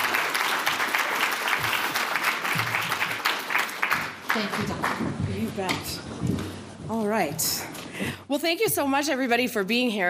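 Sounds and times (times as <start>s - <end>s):
audience applause welcoming a speaker to the podium: 0.0s - 5.3s
speech: 4.4s - 10.0s.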